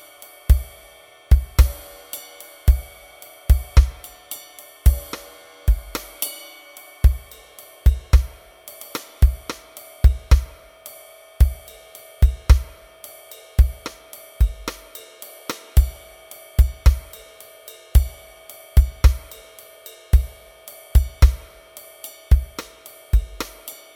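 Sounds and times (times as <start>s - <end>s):
jazz rock drums: 0.0s - 10.7s, 11.4s - 12.9s, 13.6s - 23.9s.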